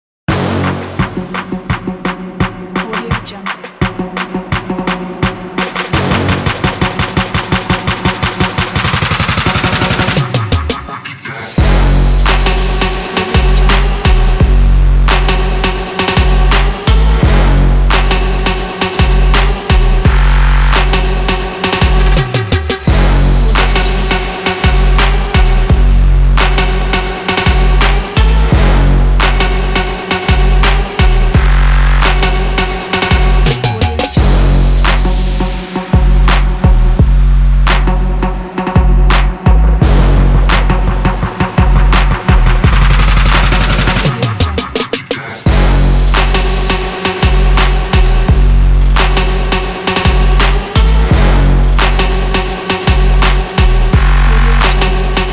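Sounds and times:
trap beat: 0.3s - 55.3s.

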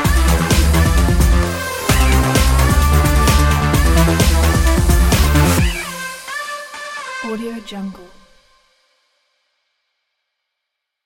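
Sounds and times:
fashion sport electro music: 0.0s - 8.4s.

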